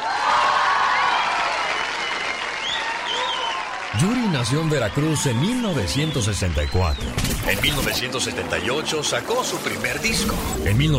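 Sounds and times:
live audience applause: 0:00.0 - 0:06.8
cheers and whistles: 0:00.0 - 0:07.2
speech: 0:04.0 - 0:10.9.

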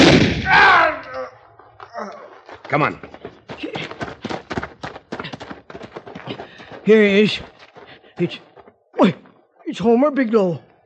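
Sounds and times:
gunshot in a radio drama shootout: 0:00.0 - 0:00.8
speech: 0:02.7 - 0:03.8, 0:06.9 - 0:07.5, 0:08.2 - 0:10.7.

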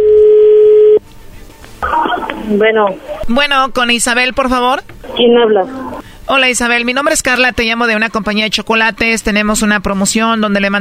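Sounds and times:
wavering telephone tone: 0:00.0 - 0:01.0
speech: 0:02.5 - 0:10.7.

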